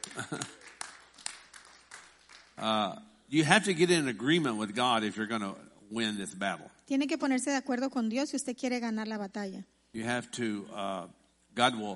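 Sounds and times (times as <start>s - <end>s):
audience clapping in praise: 0.0s - 2.8s
speech: 2.6s - 11.9s.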